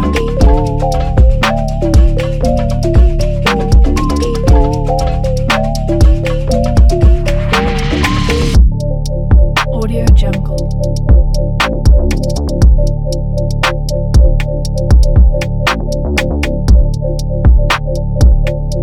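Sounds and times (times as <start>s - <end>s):
trap music bass: 0.0s - 18.8s.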